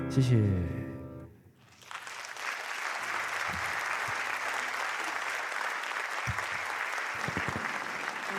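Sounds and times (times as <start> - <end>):
speech: 0.1 - 0.8
audience applause: 1.6 - 8.3.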